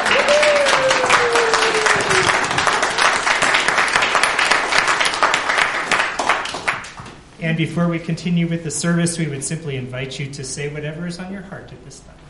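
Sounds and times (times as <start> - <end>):
audience clapping in church: 0.0 - 7.1
speech: 7.5 - 12.2.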